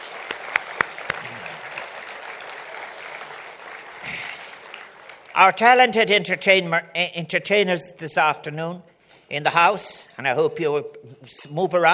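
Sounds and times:
audience applause: 0.0 - 5.4
speech: 5.4 - 11.9.

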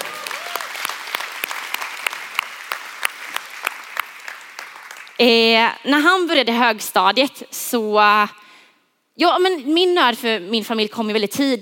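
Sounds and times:
audience applause: 0.0 - 5.2
speech: 5.2 - 8.4, 9.2 - 11.5.

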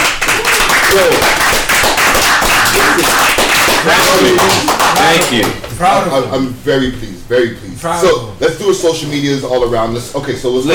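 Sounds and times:
crowd applauding: 0.0 - 5.7
speech: 1.0 - 10.7.

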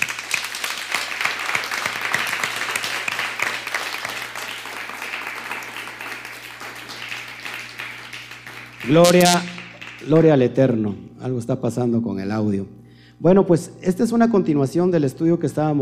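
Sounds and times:
audience applause: 0.0 - 10.3
low steady hum: 6.4 - 15.8
speech: 8.9 - 15.8.

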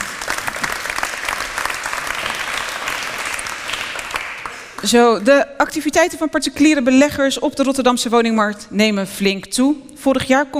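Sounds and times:
audience applause: 0.0 - 5.0
speech: 4.8 - 10.5.

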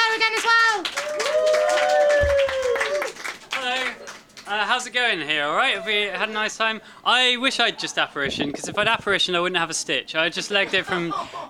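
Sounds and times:
audience applause welcoming a comedian at a 2015 Edinburgh comedy show: 0.0 - 4.9
speech: 4.8 - 11.4
laughter: 10.4 - 11.4.

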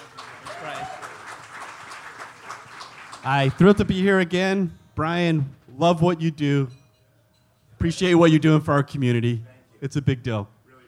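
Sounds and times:
audience applause for a presenter at an event: 0.0 - 3.9
speech: 3.2 - 6.8, 7.8 - 10.5.

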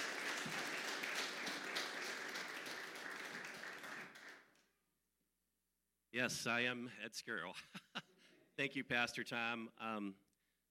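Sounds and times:
church congregation applauding a speaker: 0.0 - 4.6
speech: 6.2 - 10.2.

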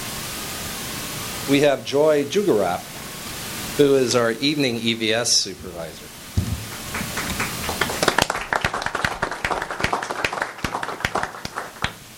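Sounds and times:
speech: 1.5 - 3.0, 3.8 - 6.1
small crowd clapping: 6.4 - 12.1.

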